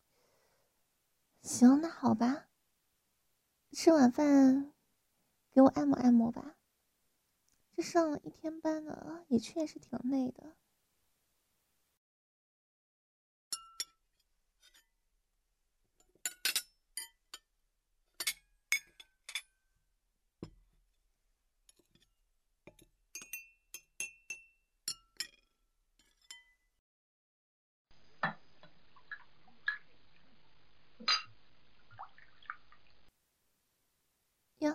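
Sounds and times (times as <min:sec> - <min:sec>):
speech: 0:01.4 - 0:02.5, 0:03.7 - 0:04.7, 0:05.6 - 0:06.6, 0:07.8 - 0:10.6
glass and dishware clinking while washing dishes: 0:13.6 - 0:14.0, 0:22.7 - 0:26.6
water dripping: 0:28.0 - 0:33.1.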